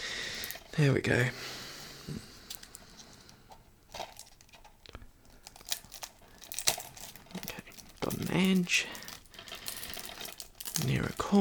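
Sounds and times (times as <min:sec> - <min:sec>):
speech: 0:00.8 - 0:02.3, 0:08.4 - 0:09.0, 0:10.8 - 0:11.3
plastic wrapper crinkling as a case is unwrapped: 0:02.5 - 0:11.3.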